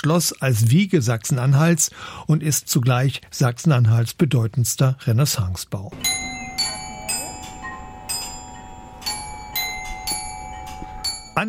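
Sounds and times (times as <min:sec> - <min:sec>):
speech: 0:00.0 - 0:06.2
glockenspiel chimes at the Bernburger Rathaus: 0:06.0 - 0:11.4.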